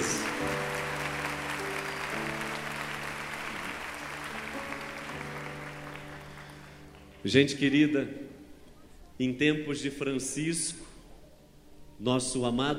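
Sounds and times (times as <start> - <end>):
audience applause: 0.0 - 7.2
speech: 7.2 - 8.3, 9.2 - 10.9, 12.0 - 12.7.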